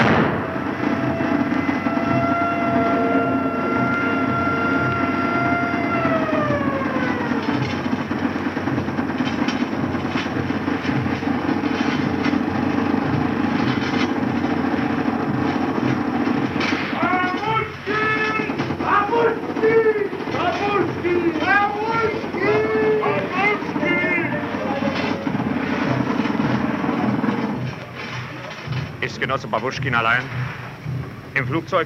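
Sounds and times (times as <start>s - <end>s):
icebreaker's siren blast: 0.0s - 9.3s, 14.5s - 27.7s
continuous low rumbling noise: 0.0s - 31.8s
scattered clanks: 7.0s - 31.6s
speech: 29.3s - 30.4s, 31.4s - 31.8s.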